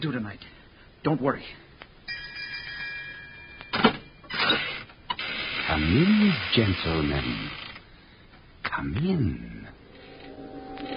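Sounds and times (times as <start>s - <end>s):
speech: 0.0s - 1.6s, 5.7s - 7.6s, 8.8s - 9.8s
electric doorbell ringing: 2.1s - 4.3s.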